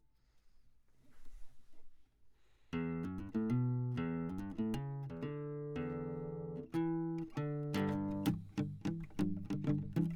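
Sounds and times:
classical guitar: 2.7s - 10.1s.

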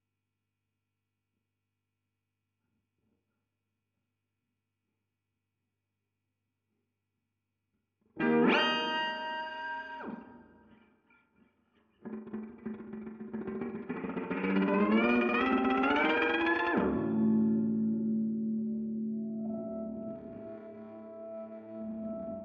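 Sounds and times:
guitar recorded with Royer microphone: 8.1s - 22.4s.

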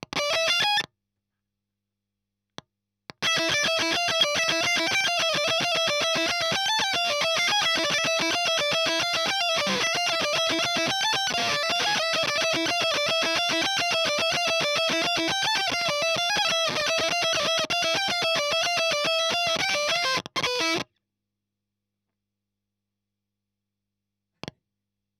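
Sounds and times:
fuzz guitar ending: 3.2s - 20.8s.

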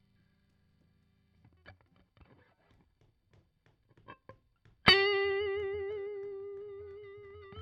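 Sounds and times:
guitar solo: 4.9s - 7.6s.

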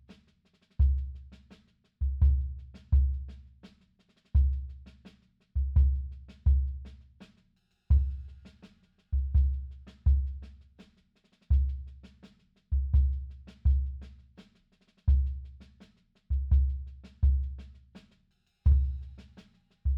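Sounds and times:
bass drum: 0.8s - 1.4s, 2.0s - 3.5s, 4.4s - 4.9s, 5.6s - 7.0s, 7.9s - 8.5s, 9.2s - 10.6s, 11.5s - 12.0s, 12.7s - 14.2s, 15.1s - 15.7s, 16.3s - 17.7s, 18.7s - 19.9s.

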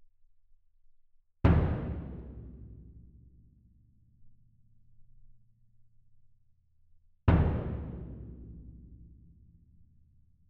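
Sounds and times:
percussion: 1.4s - 4.2s, 7.3s - 9.9s.

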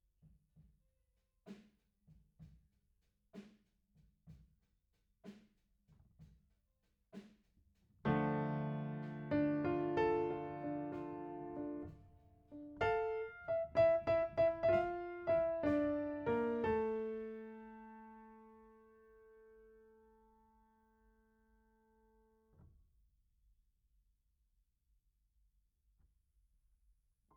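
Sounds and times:
piano note A: 8.1s - 18.8s.

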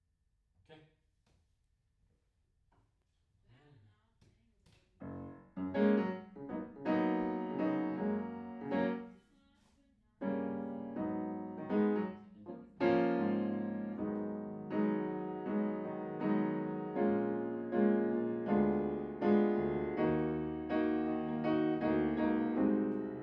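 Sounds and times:
piano in a room: 5.0s - 9.3s, 10.2s - 23.2s.

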